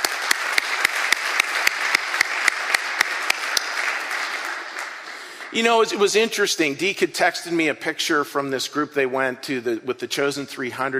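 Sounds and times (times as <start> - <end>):
audience applause: 0.0 - 5.9
speech: 5.5 - 10.9.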